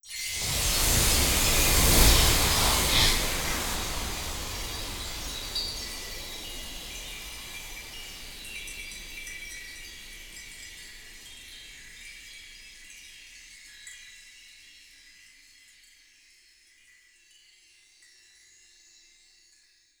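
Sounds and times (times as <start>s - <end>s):
chimes: 0.1s - 19.9s.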